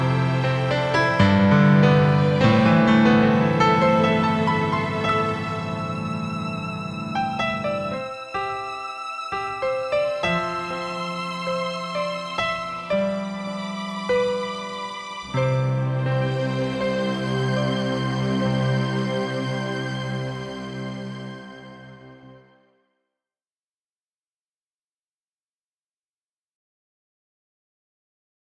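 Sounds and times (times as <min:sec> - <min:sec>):
instrumental praise music: 0:00.0 - 0:22.6.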